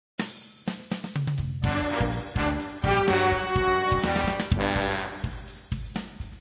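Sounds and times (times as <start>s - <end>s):
battle music: 1.6s - 6.0s.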